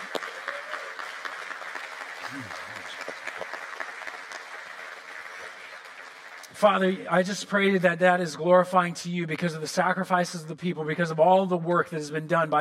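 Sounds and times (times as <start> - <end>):
large crowd clapping: 0.0 - 7.8
speech: 2.3 - 2.6, 6.6 - 12.5.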